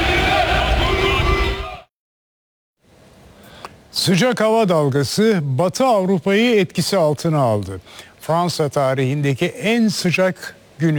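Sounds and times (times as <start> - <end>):
about 50 football fans chanting at the national team's first training in Los Angeles: 0.0 - 1.9
speech: 4.0 - 10.9.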